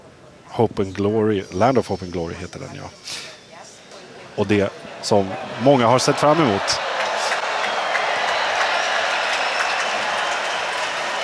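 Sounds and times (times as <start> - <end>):
speech: 0.6 - 3.3, 4.4 - 6.8
audience applause in a concert hall: 4.4 - 11.2.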